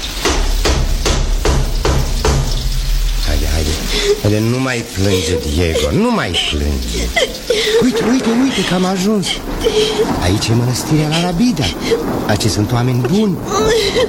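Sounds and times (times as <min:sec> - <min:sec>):
knocking on the gate of the La Rabida monastery in Spain: 0:00.2 - 0:02.6
laughter: 0:03.9 - 0:12.2
speech: 0:04.4 - 0:14.0.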